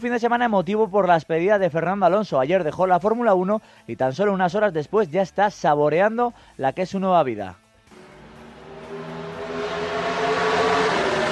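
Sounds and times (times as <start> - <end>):
speech: 0.0 - 7.6
Chevrolet NASCAR race car engine driven by Fernando Alonso: 7.9 - 11.3.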